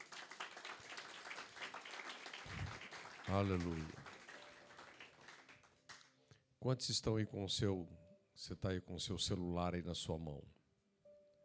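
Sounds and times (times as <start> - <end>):
audience applauding: 0.0 - 6.1
speech: 3.3 - 4.0, 6.6 - 10.6.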